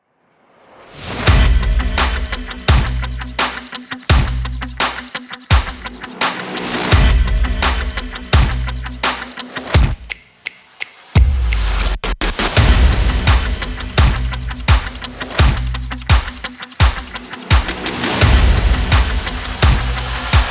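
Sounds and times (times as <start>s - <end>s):
trailer music: 0.4s - 4.7s, 5.7s - 10.1s, 10.9s - 16.2s, 17.1s - 20.4s.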